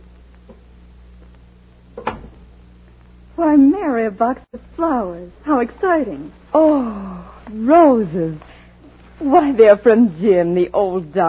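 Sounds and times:
door being opened: 0:02.0 - 0:02.5
speech: 0:03.5 - 0:08.5, 0:09.2 - 0:11.2.

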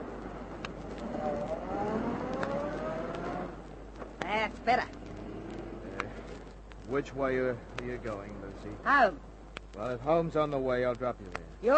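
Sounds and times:
old worn-out car engine droning as it is driven away: 0:00.0 - 0:07.5
speech: 0:04.7 - 0:05.0, 0:06.9 - 0:11.7.

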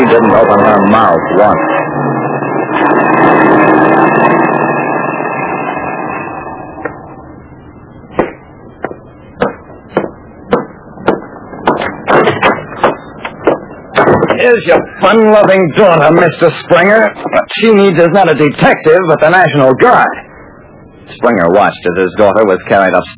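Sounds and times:
car driving: 0:00.0 - 0:17.5
speech: 0:00.2 - 0:02.2, 0:02.8 - 0:03.6, 0:14.5 - 0:20.2, 0:21.1 - 0:23.1.

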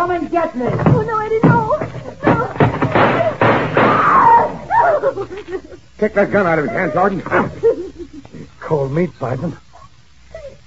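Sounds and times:
speech: 0:00.1 - 0:01.9, 0:05.2 - 0:07.6, 0:08.7 - 0:09.6
door kicked in: 0:00.7 - 0:04.6
door splintering: 0:00.7 - 0:04.7
laughter: 0:04.7 - 0:08.6.

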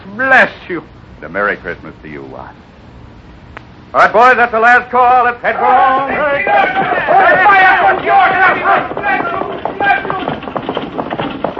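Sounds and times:
speech: 0:00.2 - 0:02.7, 0:03.9 - 0:10.3
crowd murmuring and calling out: 0:05.4 - 0:10.8
horse hooves clip-clopping pulling a buckboard wagon: 0:05.5 - 0:11.5.

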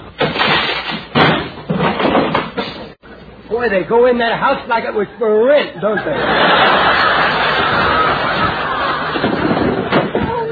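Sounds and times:
door being broken down: 0:00.2 - 0:03.0, 0:09.0 - 0:10.4
speech: 0:03.6 - 0:06.9
laughter: 0:05.0 - 0:10.0.

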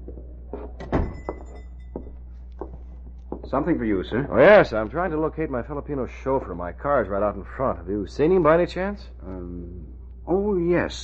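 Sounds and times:
shop door opening: 0:00.5 - 0:01.7
speech: 0:03.5 - 0:09.6, 0:10.3 - 0:11.0.

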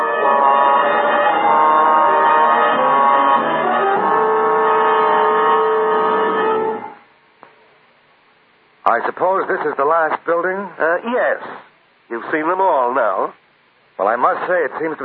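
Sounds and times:
alarm bell ringing: 0:00.0 - 0:07.0
speech: 0:08.9 - 0:13.4, 0:14.0 - 0:15.0.

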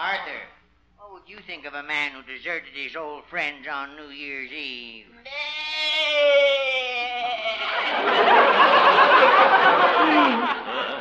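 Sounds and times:
speech: 0:00.2 - 0:00.6, 0:01.2 - 0:06.7
goat bleating: 0:05.2 - 0:06.4
laughter: 0:07.2 - 0:11.0.

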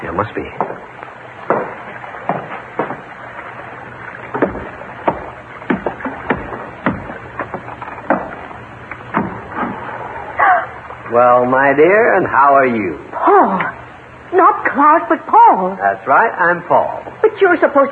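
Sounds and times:
low hum: 0:00.0 - 0:17.8
speech: 0:00.2 - 0:01.0, 0:11.1 - 0:17.9
small boat knocking against a hull: 0:00.6 - 0:03.6, 0:04.2 - 0:09.9
wood creaking: 0:00.6 - 0:11.1.

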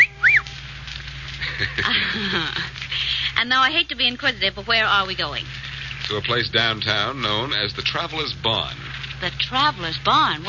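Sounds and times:
short high whistle: 0:00.0 - 0:00.6
low sound: 0:00.0 - 0:10.4
laughter: 0:01.4 - 0:02.8
speech: 0:01.6 - 0:10.4.

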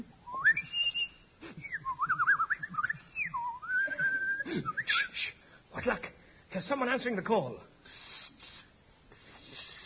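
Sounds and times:
person whistling a tune: 0:00.3 - 0:05.2
speech: 0:06.6 - 0:07.7.

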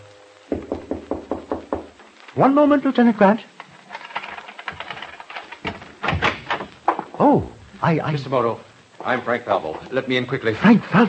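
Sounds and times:
knock on a door: 0:00.5 - 0:01.9
speech: 0:02.4 - 0:03.5, 0:07.2 - 0:11.0.

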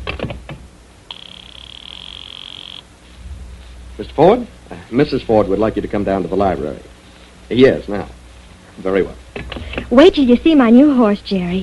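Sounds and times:
house telephone ringing: 0:01.1 - 0:02.9
speech: 0:04.0 - 0:06.9, 0:07.5 - 0:08.2, 0:08.8 - 0:11.6.

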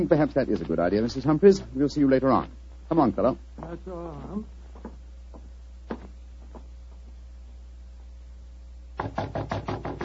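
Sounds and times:
speech: 0:00.0 - 0:04.6
knocking on a door: 0:09.0 - 0:10.0.

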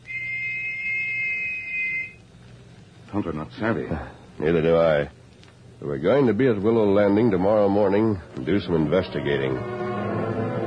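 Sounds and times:
whistle: 0:00.0 - 0:02.2
speech: 0:03.1 - 0:05.2, 0:05.8 - 0:09.8.

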